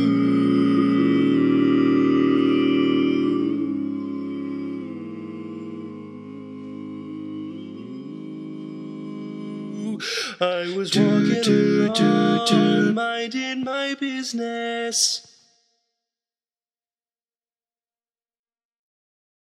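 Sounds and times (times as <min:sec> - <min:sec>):
tenor singing: 0:00.0 - 0:15.2.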